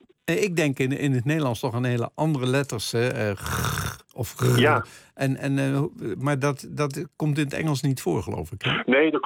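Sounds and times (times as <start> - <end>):
speech: 0.3 - 9.2
person vocally imitating a snore: 3.4 - 4.8.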